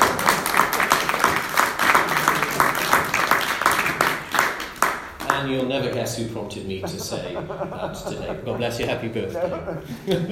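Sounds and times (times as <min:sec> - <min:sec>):
crowd round of applause for a birthday: 0:00.0 - 0:05.4
speech: 0:05.4 - 0:10.2
laughter: 0:06.4 - 0:10.2.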